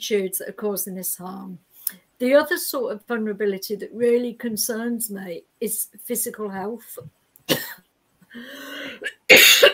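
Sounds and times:
speech: 0:00.0 - 0:07.8, 0:08.4 - 0:09.7
person coughing during a live talk: 0:07.5 - 0:07.8, 0:08.9 - 0:09.7.

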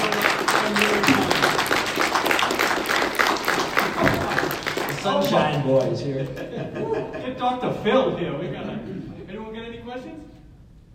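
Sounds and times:
crowd applause: 0:00.0 - 0:07.0
laughter: 0:03.8 - 0:04.7, 0:06.0 - 0:09.3
speech: 0:05.3 - 0:08.8.

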